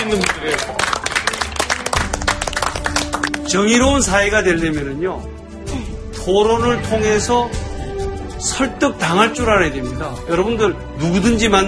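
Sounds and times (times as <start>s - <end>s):
speech: 0.0s - 1.0s, 3.5s - 5.4s, 6.3s - 7.7s, 8.4s - 11.6s
studio audience applause: 0.0s - 3.5s.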